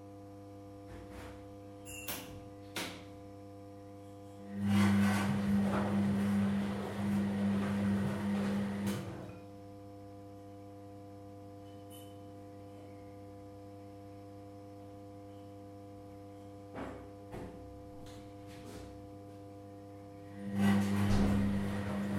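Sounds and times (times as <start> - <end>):
washing machine: 0.8 - 3.2, 4.1 - 9.5, 15.2 - 22.1.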